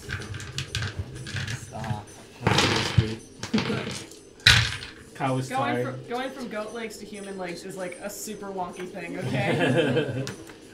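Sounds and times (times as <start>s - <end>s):
many dice rattling: 0.0s - 5.0s
speech: 5.2s - 10.5s
laughter: 9.2s - 10.4s.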